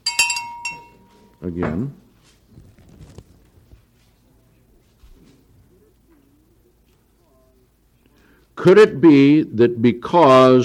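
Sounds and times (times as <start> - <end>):
small bell being rung: 0.0 - 1.4
speech: 1.4 - 2.0, 8.6 - 10.6.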